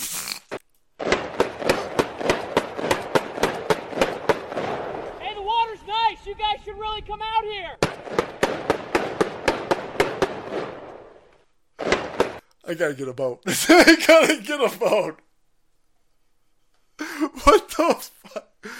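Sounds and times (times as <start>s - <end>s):
rapid gunfire on a lake: 1.0s - 5.2s, 7.8s - 10.9s, 11.8s - 12.4s
speech: 6.3s - 8.7s, 12.7s - 15.2s, 17.2s - 18.7s
laughter: 13.5s - 15.1s.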